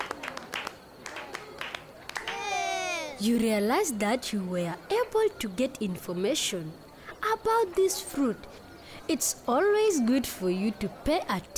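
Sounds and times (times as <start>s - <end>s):
small classroom audience clapping for themselves: 0.0s - 2.5s
speech: 3.2s - 11.5s.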